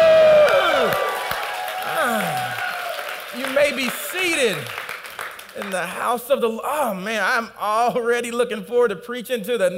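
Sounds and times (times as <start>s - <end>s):
audience cheering and shouting: 0.0s - 4.7s
speech: 5.8s - 9.7s.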